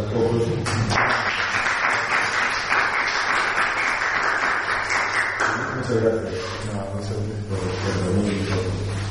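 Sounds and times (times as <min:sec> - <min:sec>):
speech: 0:00.0 - 0:01.4, 0:05.9 - 0:09.0
audience applause: 0:00.9 - 0:05.8.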